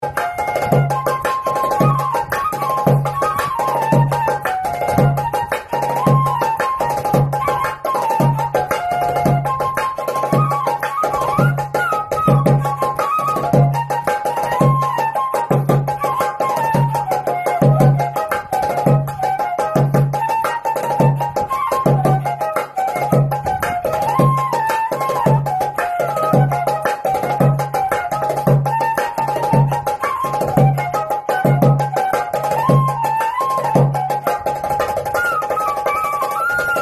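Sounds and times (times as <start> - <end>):
flute: 0.0 - 36.8.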